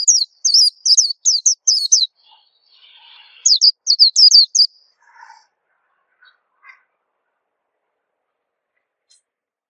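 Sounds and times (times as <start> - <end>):
white-eye song: 0.0 - 5.5.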